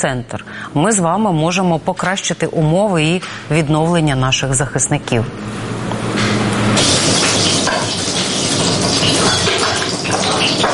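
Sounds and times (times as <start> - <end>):
speech: 0.0 - 6.0
cutlets sizzling in a frying pan: 6.8 - 10.7.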